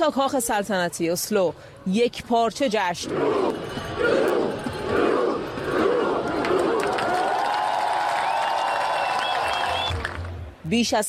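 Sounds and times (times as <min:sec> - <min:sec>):
speech: 0:00.0 - 0:05.0, 0:10.7 - 0:11.0
scattered shouts: 0:03.0 - 0:08.2
large crowd cheering: 0:03.0 - 0:10.3
high whistles: 0:08.2 - 0:10.0.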